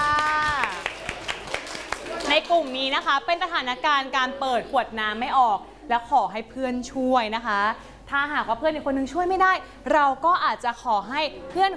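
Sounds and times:
children clapping hands: 0.0 - 3.0
speech: 2.4 - 11.7.

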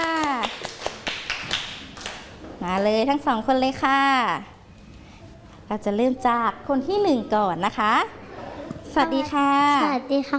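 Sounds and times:
classroom applause for a student: 0.0 - 2.2
speech: 2.6 - 4.5, 5.7 - 8.2, 9.0 - 10.3.

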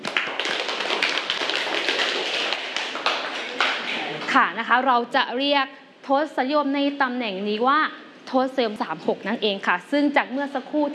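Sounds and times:
classroom applause: 0.0 - 4.3
speech: 4.4 - 10.9.

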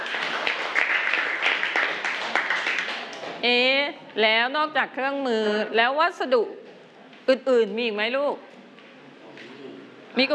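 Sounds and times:
classroom clapping for group five: 0.0 - 3.4
speech: 3.4 - 6.6, 7.3 - 8.5, 10.2 - 10.3.

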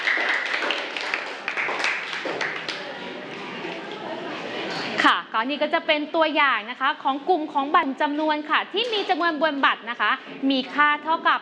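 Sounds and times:
classroom clapping: 0.0 - 3.1
speech: 5.0 - 11.4.

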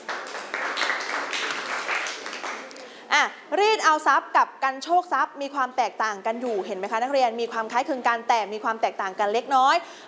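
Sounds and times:
students clapping in class: 0.0 - 2.9
speech: 3.2 - 10.0.

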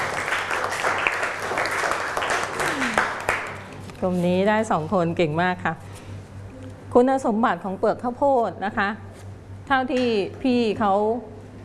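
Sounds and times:
group applause: 0.0 - 3.7
speech: 4.0 - 5.9, 6.9 - 9.1, 9.7 - 11.3.

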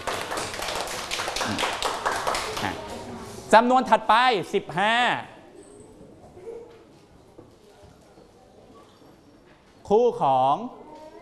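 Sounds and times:
classroom group clapping: 0.0 - 3.0
speech: 1.5 - 1.7, 3.5 - 5.3, 9.9 - 10.8.

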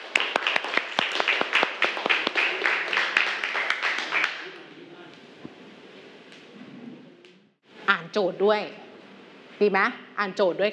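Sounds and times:
class of students clapping for classmates: 0.0 - 4.6
speech: 8.1 - 8.8, 9.6 - 10.7.

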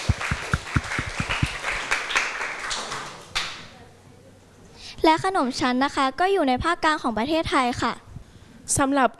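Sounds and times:
group of people applauding: 0.0 - 3.7
speech: 5.0 - 8.0, 8.7 - 9.1.

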